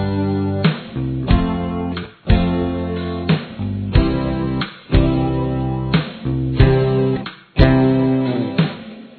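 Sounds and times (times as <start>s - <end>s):
backing music: 0.0s - 9.1s.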